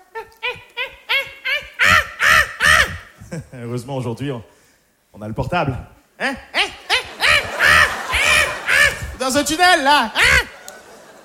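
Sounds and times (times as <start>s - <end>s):
laughter: 0.1s - 3.6s, 6.6s - 11.2s
voice imitating caveman-style grunting: 0.2s - 3.2s, 6.2s - 9.5s, 10.1s - 10.6s
speech: 3.3s - 4.6s, 5.2s - 6.7s, 9.3s - 10.4s.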